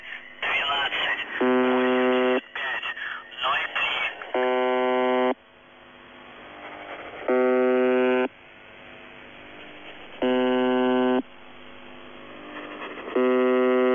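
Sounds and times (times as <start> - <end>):
numbers station buzzer: 0.0 - 5.4, 6.6 - 8.3, 9.5 - 11.3, 12.3 - 13.9.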